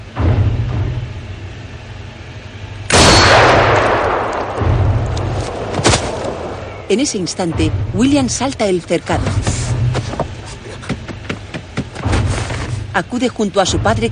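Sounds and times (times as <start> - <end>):
low droning background: 0.0 - 14.0
gunshot from a Western film: 2.9 - 4.8
sharp crack: 2.9 - 6.8
speech: 6.9 - 9.6, 13.0 - 14.0.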